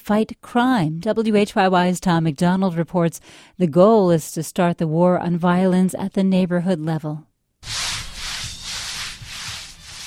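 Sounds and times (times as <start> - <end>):
speech: 0.0 - 7.8
cornhusk broom scrubbing pavement with water: 7.6 - 10.0.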